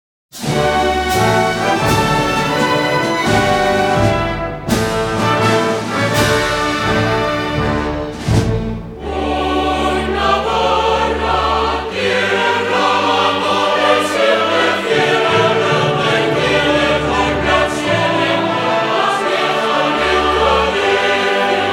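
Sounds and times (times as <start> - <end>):
orchestra: 0.3 - 21.7
choir singing in Spanish: 0.4 - 21.7.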